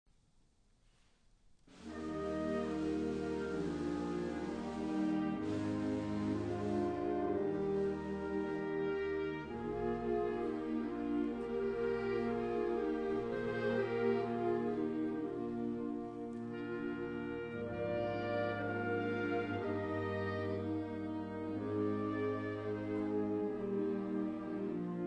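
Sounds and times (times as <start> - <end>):
wind ensemble chorale: 1.7 - 25.0.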